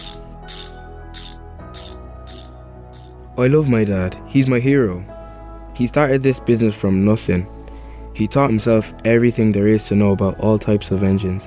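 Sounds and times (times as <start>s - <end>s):
ratcheting clicks of a wrench tightening bolts: 0.0s - 3.2s
speech: 3.4s - 5.1s, 5.8s - 7.6s, 8.2s - 11.4s.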